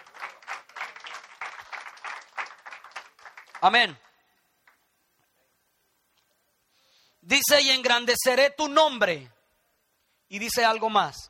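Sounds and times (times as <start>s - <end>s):
audience applause: 0.0s - 4.0s
speech: 3.6s - 4.0s, 7.3s - 9.4s, 10.3s - 11.2s.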